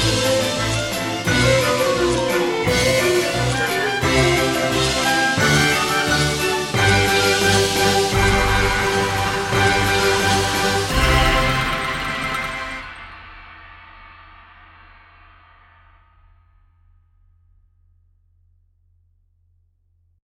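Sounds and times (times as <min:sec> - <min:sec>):
light curtain music: 0:00.0 - 0:13.1.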